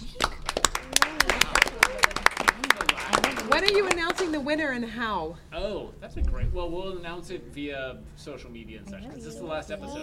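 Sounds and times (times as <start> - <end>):
small group clapping: 0.0 - 4.6
speech: 3.7 - 10.0.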